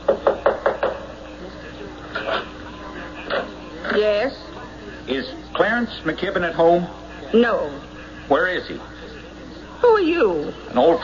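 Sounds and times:
faint murmur: 0.0s - 11.0s
sharp knocks on the front door of a house: 0.1s - 1.0s
speech: 5.8s - 8.9s, 10.0s - 11.0s.

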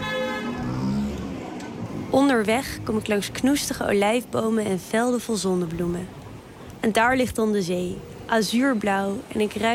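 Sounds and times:
car horn honking in busy road traffic in Italy: 0.0s - 0.8s
road traffic engines rumbling in Italy: 0.0s - 9.7s
speech: 2.1s - 6.2s, 6.8s - 9.7s.

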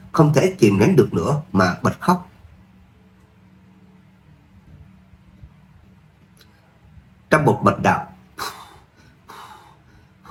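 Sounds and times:
speech: 0.2s - 2.3s, 7.4s - 8.1s
rapid heavy panting breaths: 8.4s - 10.2s.

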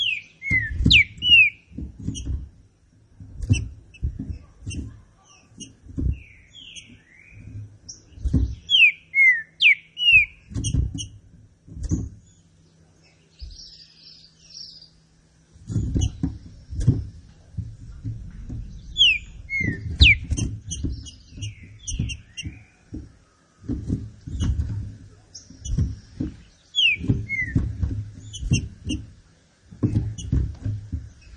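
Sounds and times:
Green-winged saltator song: 0.0s - 2.3s, 4.7s - 10.8s, 18.7s - 22.8s, 26.5s - 28.6s
rhythmic low knocking: 0.0s - 8.7s, 15.1s - 31.3s.

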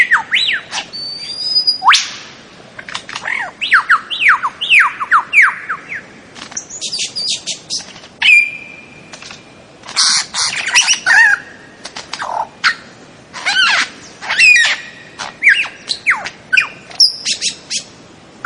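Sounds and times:
bird song with squawks: 0.0s - 2.2s, 3.1s - 9.0s, 9.8s - 18.4s.

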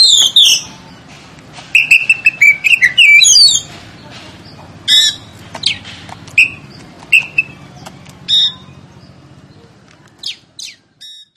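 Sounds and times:
Oriental magpie-robin song of sweet whistles and scratchy trills: 0.0s - 1.1s, 1.7s - 3.7s, 4.4s - 7.6s, 8.3s - 9.6s, 10.2s - 11.3s.

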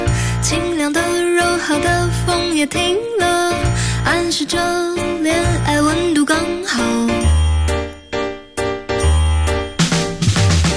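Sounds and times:
piano playing a doorbell chime melody: 0.0s - 10.7s
speech: 0.4s - 7.4s.

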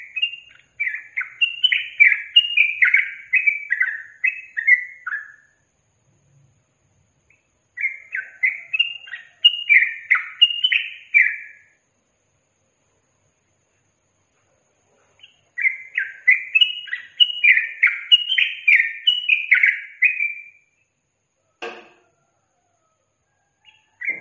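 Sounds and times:
yellow-vented bulbul singing chattering slurred phrases: 0.0s - 5.6s, 7.3s - 11.6s, 15.1s - 20.9s.

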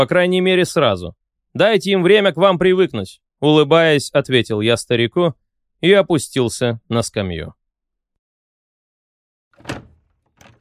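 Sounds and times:
speech: 0.0s - 7.6s
house's second door swinging open with a thud and rattle: 9.6s - 10.6s.

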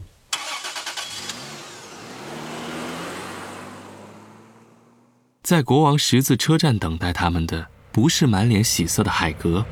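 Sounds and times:
car starter cranking: 0.3s - 2.0s
car engine humming as the vehicle pulls away: 0.4s - 5.4s, 6.4s - 9.6s
speech: 5.4s - 9.6s.

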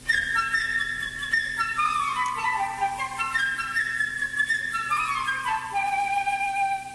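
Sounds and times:
flute playing a melody: 0.0s - 6.9s.

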